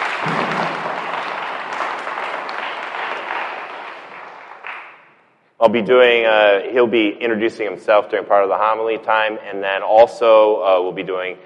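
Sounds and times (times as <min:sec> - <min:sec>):
warm round of applause: 0:00.0 - 0:05.3
speech: 0:05.6 - 0:11.4.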